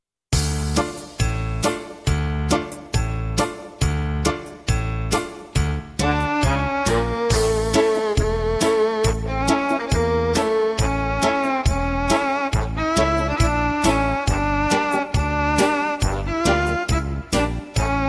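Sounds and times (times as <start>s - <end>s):
brass music: 0.4s - 18.0s.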